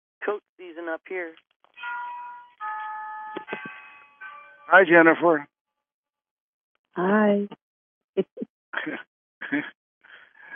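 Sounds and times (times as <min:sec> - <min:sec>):
speech: 0:00.2 - 0:02.0, 0:04.7 - 0:05.5, 0:07.0 - 0:07.6, 0:08.2 - 0:09.8
old mechanical clock chiming: 0:01.8 - 0:05.0.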